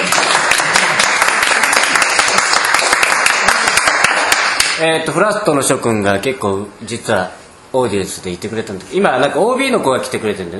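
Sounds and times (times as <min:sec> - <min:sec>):
audience applause: 0:00.0 - 0:04.8
speech: 0:04.8 - 0:10.5.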